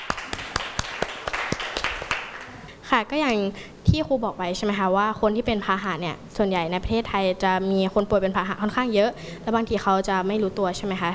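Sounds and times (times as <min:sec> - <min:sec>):
students clapping hands: 0:00.0 - 0:02.6
speech: 0:02.9 - 0:11.1.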